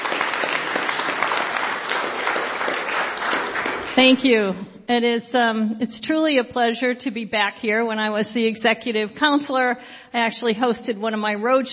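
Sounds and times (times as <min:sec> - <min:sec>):
audience applause: 0:00.0 - 0:04.0
speech: 0:04.0 - 0:11.7.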